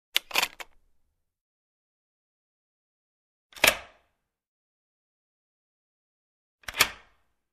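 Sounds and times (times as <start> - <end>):
various door locks: 3.5 - 4.0, 6.6 - 7.2.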